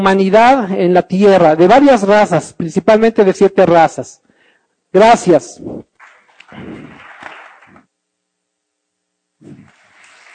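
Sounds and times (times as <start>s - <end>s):
speech: 0.0s - 4.2s, 4.9s - 5.9s, 6.5s - 7.0s
low electrical hum: 0.0s - 10.3s
audience clapping: 6.0s - 7.9s.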